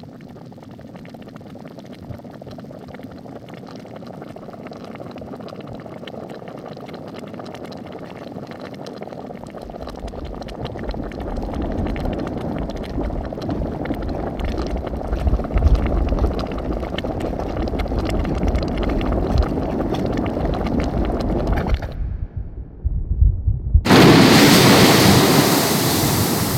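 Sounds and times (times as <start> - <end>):
Strokkur geyser bubbling and gurgling in Iceland: 0.1 - 22.0, 23.8 - 26.5
Strokkur geyser erupting in Iceland: 9.6 - 22.0, 23.9 - 26.5.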